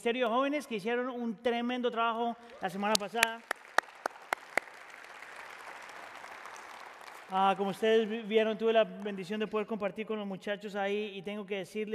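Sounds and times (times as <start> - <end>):
speech: 0.0 - 3.6, 7.3 - 11.9
audience applause: 2.5 - 8.2.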